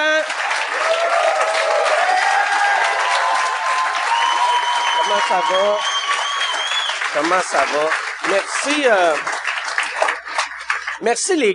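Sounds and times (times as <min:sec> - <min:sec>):
audience applause for the guests: 0:00.0 - 0:11.3
faint cheers: 0:00.6 - 0:07.0
whistles: 0:04.1 - 0:07.1
speech: 0:05.2 - 0:06.0, 0:07.1 - 0:09.3, 0:11.0 - 0:11.5.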